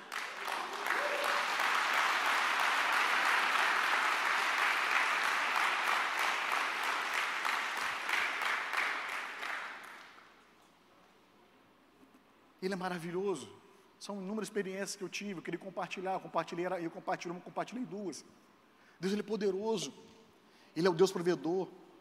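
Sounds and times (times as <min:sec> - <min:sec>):
crowd clapping: 0:00.0 - 0:10.4
speech: 0:12.6 - 0:20.1, 0:20.8 - 0:21.8.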